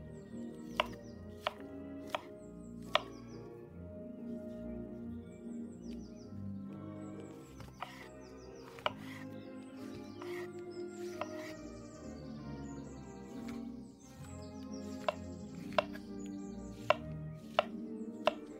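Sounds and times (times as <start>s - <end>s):
soft oldies music: 0.0s - 18.5s
knife chops in a kitchen: 0.7s - 2.3s, 2.9s - 3.2s, 7.6s - 8.1s, 8.7s - 9.3s, 11.1s - 11.6s, 14.9s - 16.2s, 16.8s - 18.5s.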